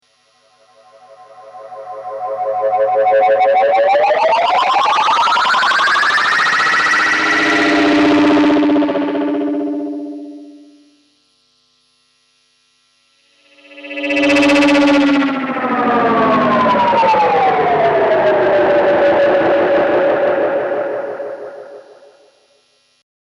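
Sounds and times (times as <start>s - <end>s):
Galaxy Tape Echo UFO noise effect rising and falling: 0.6s - 10.9s, 13.4s - 22.2s.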